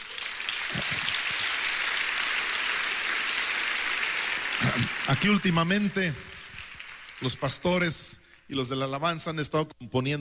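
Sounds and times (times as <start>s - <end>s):
audience applause: 0.0s - 7.9s
speech: 4.7s - 6.4s, 7.2s - 10.1s.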